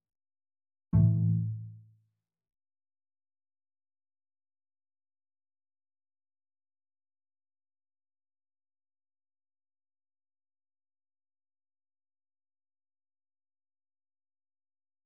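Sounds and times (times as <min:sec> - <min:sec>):
strings: 0:01.0 - 0:01.7.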